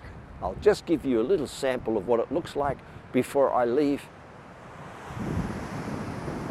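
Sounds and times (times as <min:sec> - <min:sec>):
wind buffeting a microphone outdoors: 0:00.0 - 0:02.8, 0:04.6 - 0:06.4
speech: 0:00.4 - 0:04.2.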